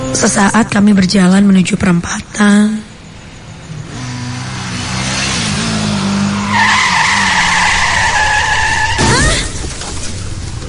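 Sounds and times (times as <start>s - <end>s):
speech: 0.2s - 2.9s
motorcycle tire squeal near an intersection: 3.6s - 10.4s.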